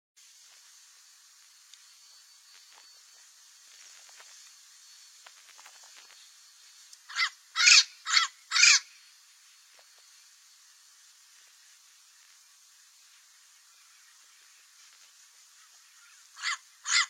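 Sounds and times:
Cape parrot squawking: 7.1 - 8.9, 16.4 - 17.0.

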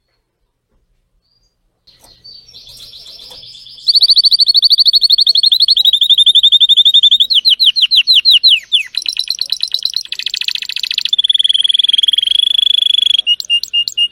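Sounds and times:
Spanish Timbrado canary song: 1.2 - 14.1.

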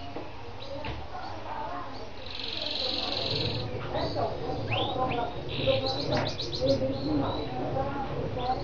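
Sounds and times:
Lancashire canary song: 0.0 - 8.6.

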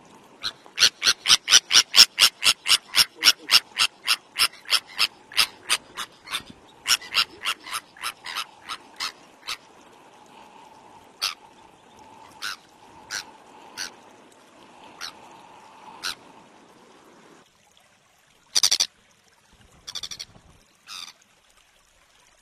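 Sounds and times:
Sabine's gull uttering rasping calls: 0.4 - 9.6, 11.2 - 11.4, 12.3 - 14.0, 15.0 - 15.2, 16.0 - 16.2.

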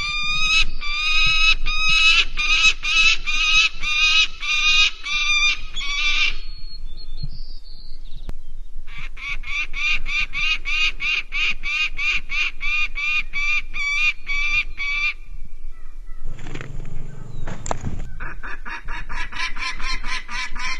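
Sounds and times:
common kestrel calling: 0.0 - 7.8, 8.9 - 20.7.

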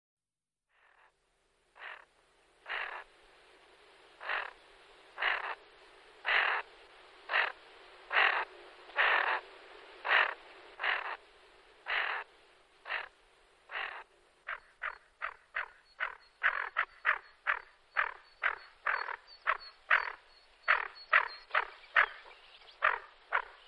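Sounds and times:
Greater scaup gravelly calls: 1.8 - 3.1, 4.2 - 4.6, 5.2 - 5.6, 6.2 - 6.7, 7.3 - 9.4, 10.0 - 11.2, 11.8 - 13.1, 13.7 - 23.6.

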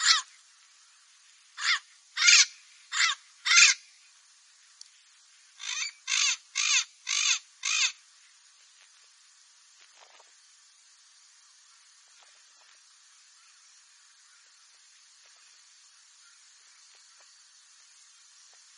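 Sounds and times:
parrot giving harsh raspy squawks: 0.0 - 0.3, 1.6 - 3.8, 5.6 - 8.0.

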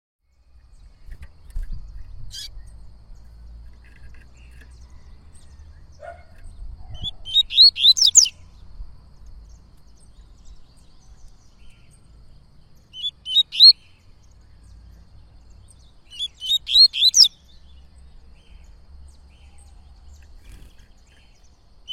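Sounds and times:
Yellow-bellied seedeater singing: 0.2 - 21.9.

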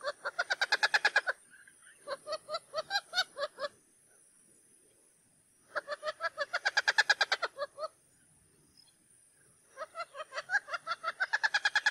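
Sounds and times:
wattled jacana calling: 0.0 - 3.8, 5.7 - 8.1, 9.7 - 11.8.

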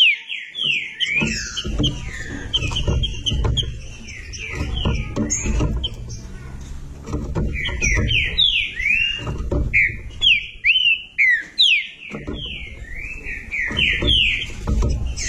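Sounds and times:
green-winged saltator song: 0.0 - 6.4, 7.4 - 15.2
low rumbling background noise: 1.0 - 15.2.

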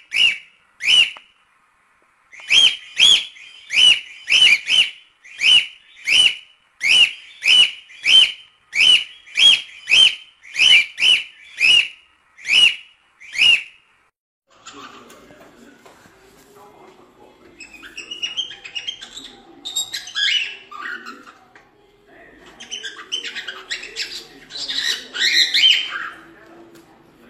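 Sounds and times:
lutino cockatiel singing scratchy warble: 0.0 - 1.2, 2.3 - 13.8, 17.6 - 21.4, 22.6 - 26.3.

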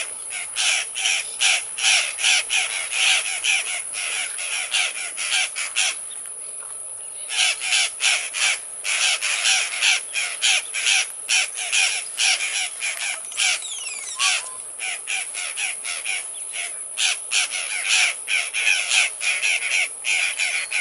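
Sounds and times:
violaceous jay giving harsh loud cawing calls: 0.0 - 6.0, 7.3 - 20.7.

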